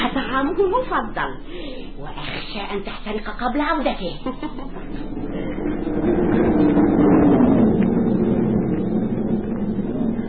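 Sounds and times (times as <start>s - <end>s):
speech: 0.2s - 6.7s
howling wind: 4.6s - 10.2s.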